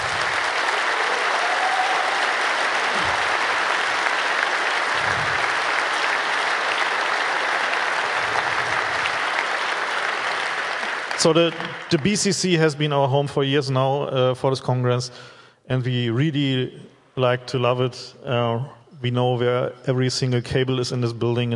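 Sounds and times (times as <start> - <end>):
large audience applause: 0.0 - 12.5
speech: 11.2 - 21.5.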